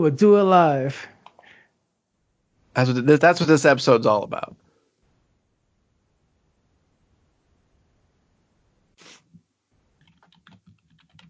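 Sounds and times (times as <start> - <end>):
speech: 0.0 - 1.1, 2.8 - 4.6
quiet typing on a computer keyboard while playing Outer Wilds: 10.0 - 11.2.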